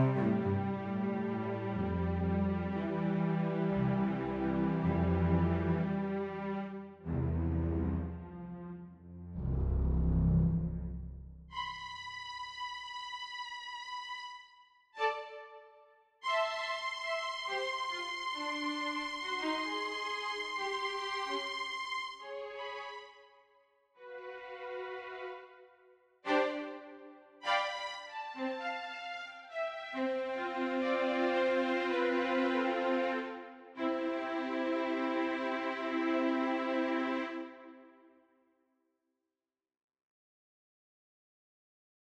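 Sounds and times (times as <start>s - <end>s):
studio string ensemble: 0.0s - 14.3s, 16.2s - 23.2s, 24.1s - 25.5s, 26.3s - 37.9s.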